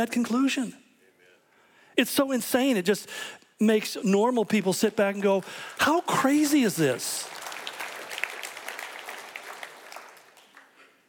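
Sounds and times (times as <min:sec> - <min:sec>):
speech: 0:00.0 - 0:00.8, 0:02.0 - 0:07.4
audience applause: 0:05.4 - 0:11.0.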